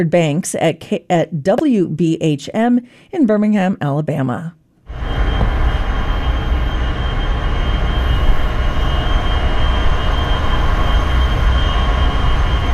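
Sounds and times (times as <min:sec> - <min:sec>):
speech: 0:00.0 - 0:05.3
data center facility in Memphis operating with broadband rumble: 0:04.9 - 0:12.7
steady tonal whine of a data center facility: 0:04.9 - 0:12.7.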